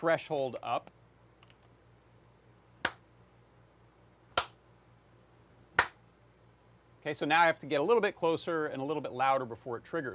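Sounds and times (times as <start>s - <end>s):
speech: 0.0s - 1.0s, 7.0s - 10.1s
faint low hum: 0.0s - 10.1s
finger snaps: 2.8s - 3.0s, 4.4s - 4.6s, 5.8s - 6.0s.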